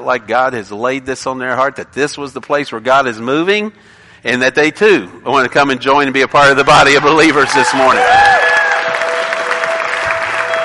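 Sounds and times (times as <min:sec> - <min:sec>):
speech: 0:00.0 - 0:08.4
crowd applauding: 0:06.9 - 0:10.6.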